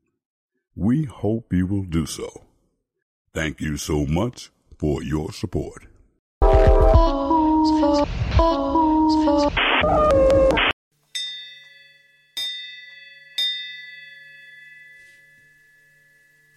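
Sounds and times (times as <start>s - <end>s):
speech: 0.8s - 2.5s, 3.4s - 5.9s, 7.0s - 10.6s
melodic music: 6.4s - 9.6s
dinner bell ringing: 11.1s - 16.5s.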